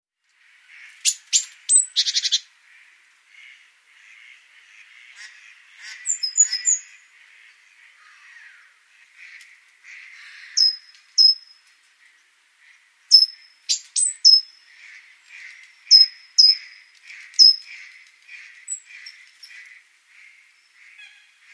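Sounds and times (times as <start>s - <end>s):
great tit calls: 0.4s - 21.5s.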